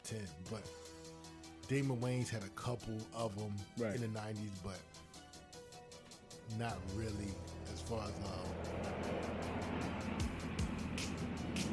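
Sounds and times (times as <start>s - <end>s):
speech: 0.1s - 0.9s, 1.7s - 5.0s, 6.5s - 9.6s
airplane flying overhead: 6.8s - 11.7s.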